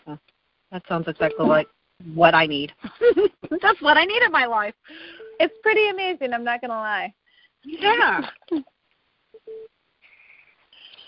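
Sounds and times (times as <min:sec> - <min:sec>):
speech: 0:00.1 - 0:08.7
electronic device beeping: 0:01.2 - 0:01.7, 0:05.2 - 0:05.8.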